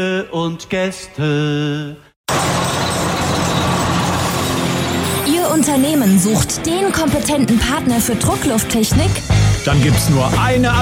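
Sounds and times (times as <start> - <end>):
speech: 0.0 - 2.7, 5.6 - 10.8
car engine driving off: 2.3 - 6.6.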